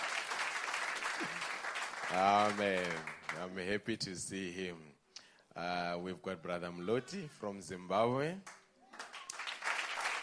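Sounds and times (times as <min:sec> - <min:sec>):
audience applause: 0:00.0 - 0:03.4, 0:09.0 - 0:10.2
speech: 0:02.1 - 0:05.0, 0:05.6 - 0:08.5.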